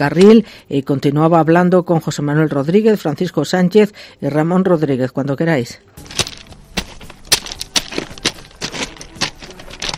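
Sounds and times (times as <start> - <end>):
speech: 0.0 - 6.2
footsteps crunching railway ballast stones: 6.0 - 9.9.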